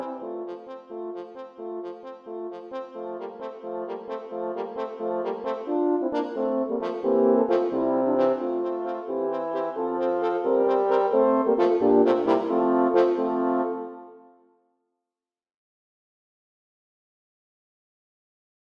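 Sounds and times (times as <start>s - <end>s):
fire horn playing: 0.0s - 14.4s.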